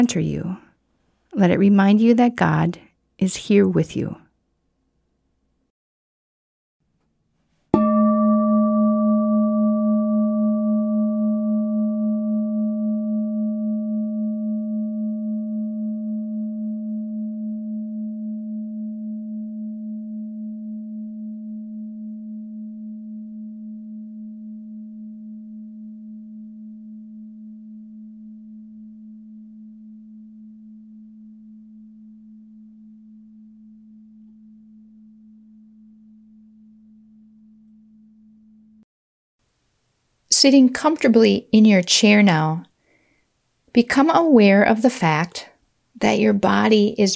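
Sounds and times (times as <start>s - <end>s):
speech: 0.0s - 0.7s, 1.4s - 4.2s, 40.4s - 42.7s, 43.7s - 47.1s
struck meditation bowl ringing: 7.8s - 38.8s.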